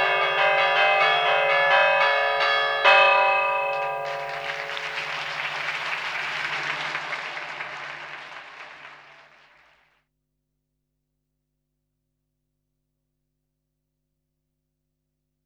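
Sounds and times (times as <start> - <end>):
festive peal of church bells: 0.0 - 7.8.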